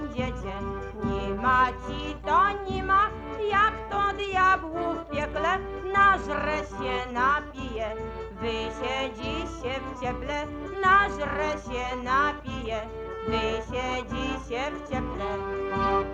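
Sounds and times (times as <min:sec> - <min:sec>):
polka music: 0:00.0 - 0:16.1.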